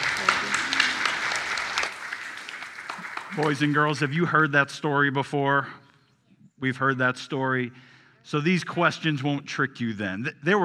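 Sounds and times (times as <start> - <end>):
audience applause: 0.0 - 4.3
speech: 3.4 - 5.8, 6.6 - 10.6.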